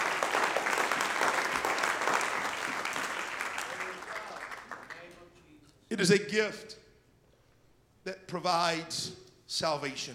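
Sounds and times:
crowd clapping: 0.0 - 5.3
speech: 6.0 - 6.8, 8.0 - 10.1.

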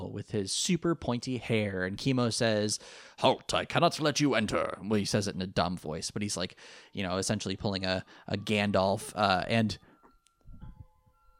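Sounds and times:
speech: 0.2 - 9.9
clock chiming a tune: 6.6 - 11.3.

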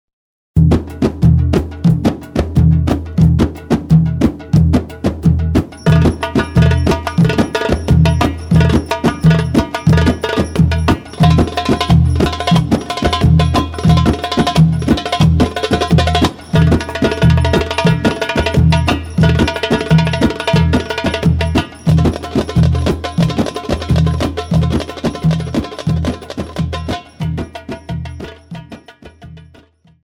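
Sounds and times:
darbuka drumming for oriental belly dance: 0.6 - 30.0.

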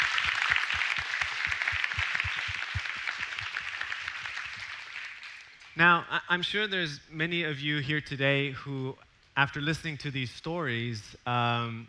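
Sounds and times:
round of applause: 0.0 - 5.8
speech: 5.8 - 11.8.

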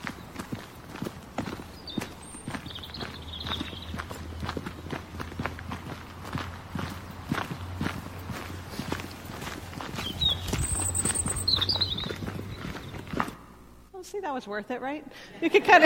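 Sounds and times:
footsteps of two people walking through countryside: 0.0 - 13.9
faint high bird chirps: 1.8 - 4.0, 10.0 - 13.2
speech: 14.3 - 15.8.

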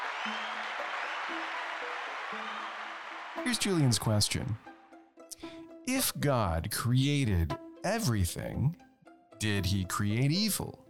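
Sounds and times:
audience applause: 0.0 - 4.5
speech: 0.2 - 0.6, 1.3 - 2.8, 3.4 - 4.7, 5.9 - 10.8.

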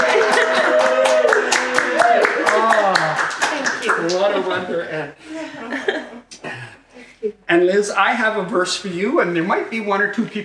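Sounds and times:
audience clapping: 0.0 - 4.6
laughter: 0.0 - 7.2
speech: 7.5 - 10.4.

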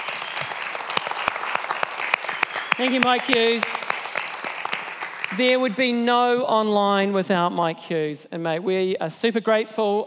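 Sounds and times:
audience applause: 0.0 - 5.5
speech: 2.8 - 3.7, 5.3 - 10.0.

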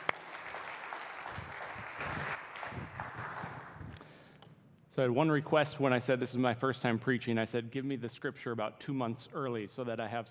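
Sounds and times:
room full of people applauding for the speaker: 0.0 - 4.0
speech: 5.0 - 10.3.

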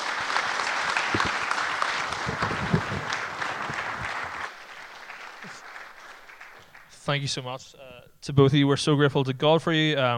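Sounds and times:
audience applause: 0.0 - 7.1
speech: 7.1 - 10.1.

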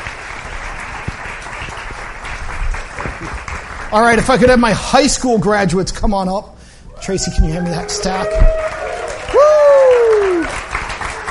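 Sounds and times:
audience clapping: 0.0 - 5.1, 7.4 - 11.3
speech: 3.9 - 8.8.

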